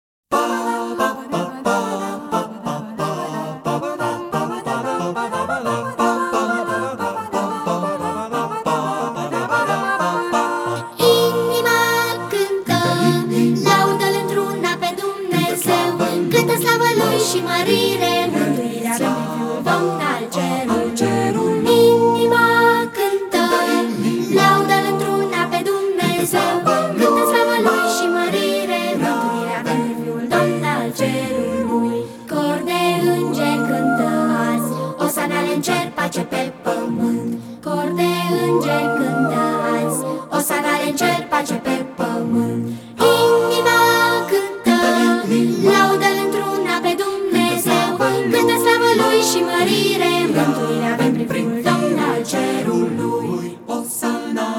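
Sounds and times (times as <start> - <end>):
carol singing: 0.3 - 54.5.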